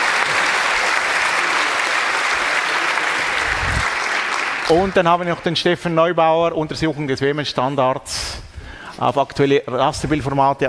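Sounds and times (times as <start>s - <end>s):
audience applause: 0.0s - 5.4s
speech: 4.7s - 10.6s.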